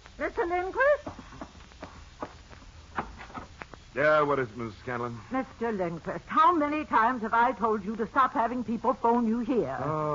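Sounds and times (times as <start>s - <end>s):
faint low hum: 0.0s - 10.1s
speech: 0.2s - 0.9s, 4.0s - 10.1s
footsteps down a hallway: 0.8s - 4.0s.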